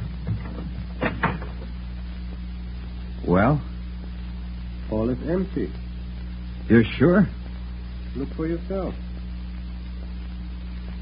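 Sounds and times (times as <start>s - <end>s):
door being opened: 0.0s - 1.6s
speech: 3.3s - 3.7s, 4.9s - 5.8s, 6.7s - 7.4s, 8.2s - 9.1s.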